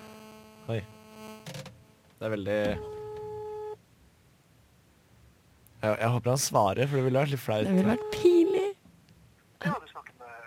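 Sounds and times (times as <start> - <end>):
faint hum: 0.0 - 10.4
speech: 0.7 - 1.6, 2.2 - 2.9, 5.8 - 8.4
telephone ringback tone: 2.7 - 3.8, 7.8 - 8.6.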